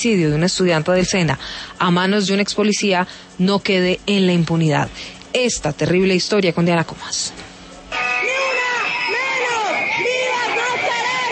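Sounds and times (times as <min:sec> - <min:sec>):
speech: 0:00.0 - 0:07.5
protest crowd of men and women shouting: 0:07.9 - 0:11.2.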